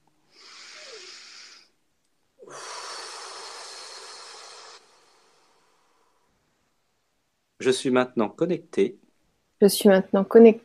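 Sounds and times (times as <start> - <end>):
deep breath: 0.2 - 1.8, 2.4 - 6.6
speech: 7.6 - 9.0, 9.6 - 10.6.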